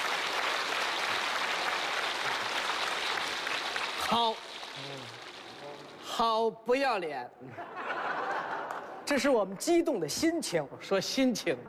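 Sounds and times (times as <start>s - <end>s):
audience applause: 0.0s - 6.0s
speech: 4.1s - 5.2s, 6.2s - 8.1s, 9.1s - 11.6s
laughter: 7.4s - 9.0s.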